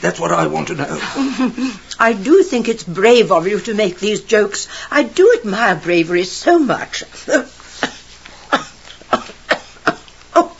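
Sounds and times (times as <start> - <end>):
speech: 0.0 - 7.5
choking coughs from a fishbone stuck in the throat: 7.3 - 10.5.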